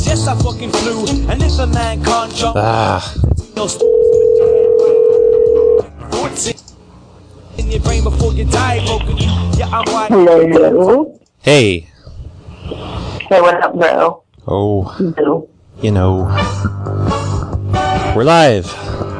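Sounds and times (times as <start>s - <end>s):
speech: 0.2s - 4.4s, 7.6s - 11.9s, 12.7s - 17.2s, 18.2s - 19.0s
telephone dial tone while calling a phone number: 3.8s - 5.8s.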